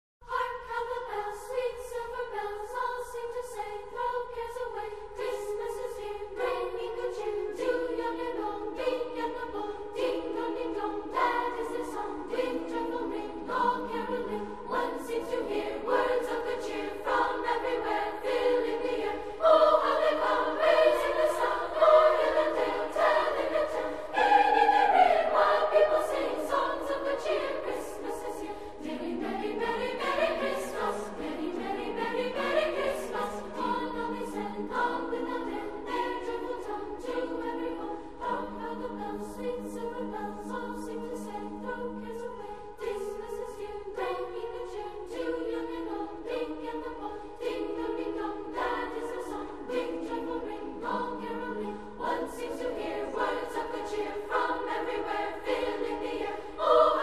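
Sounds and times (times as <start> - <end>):
music track at 160 bpm: 0.2 - 57.0.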